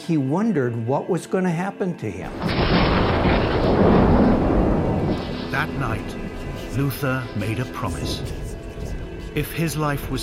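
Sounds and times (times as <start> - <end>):
speech: 0.1 - 2.9, 5.6 - 6.2, 6.8 - 8.4, 9.3 - 10.2
thunder clap from lightning strike: 2.3 - 9.4.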